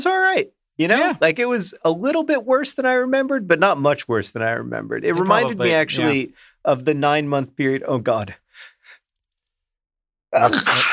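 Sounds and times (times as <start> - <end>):
speech: 0.0 - 8.7, 10.3 - 10.9
person sneezing: 10.4 - 10.9.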